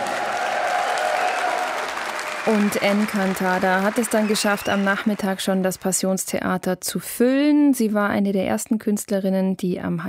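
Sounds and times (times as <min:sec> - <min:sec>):
crowd applause greeting a Latin-pop singer at the Heimatsound festival: 0:00.0 - 0:06.0
speech: 0:02.4 - 0:10.0.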